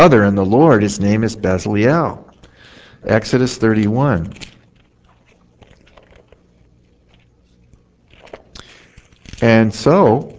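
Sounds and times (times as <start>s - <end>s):
speech: 0.0s - 2.2s, 3.0s - 4.5s, 9.4s - 10.3s
pages of a Bible being turned: 3.7s - 10.3s.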